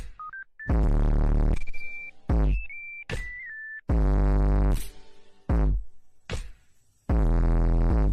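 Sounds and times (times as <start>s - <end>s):
boosted bass: 0.7s - 1.6s, 2.3s - 2.7s, 3.9s - 4.9s, 5.5s - 5.9s, 7.1s - 8.1s.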